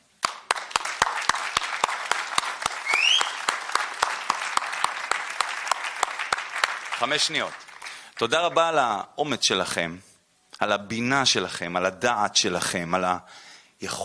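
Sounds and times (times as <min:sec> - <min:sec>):
applause: 0:00.2 - 0:08.9
speech: 0:07.0 - 0:07.6, 0:08.2 - 0:14.0.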